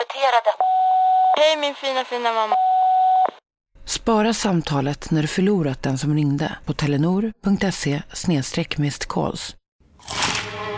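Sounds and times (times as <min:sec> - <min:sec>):
speech: 0:00.2 - 0:00.8, 0:01.4 - 0:02.6, 0:03.9 - 0:10.2
crunch of biting a crispy chicken burger: 0:10.0 - 0:10.6.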